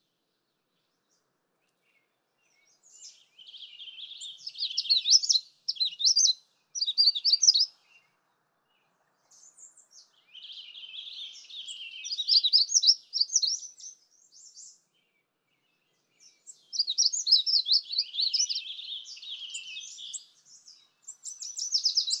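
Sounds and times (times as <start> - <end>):
magnolia warbler song of high quick warbled notes: 0.0 - 22.1.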